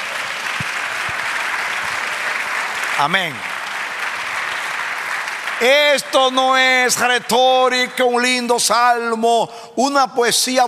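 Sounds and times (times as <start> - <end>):
audience applauding: 0.0 - 7.2
speech: 3.0 - 3.5, 5.6 - 10.6.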